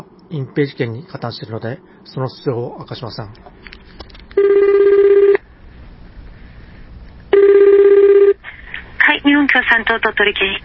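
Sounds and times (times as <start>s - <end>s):
speech: 0.3s - 3.7s, 9.5s - 10.6s
telephone ringing: 4.4s - 5.4s, 7.3s - 8.4s.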